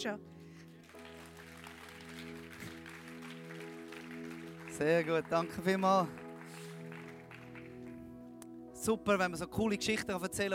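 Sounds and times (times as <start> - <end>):
speech: 0.0 - 0.4, 4.8 - 6.6, 8.8 - 10.5
audience applause: 0.6 - 8.0.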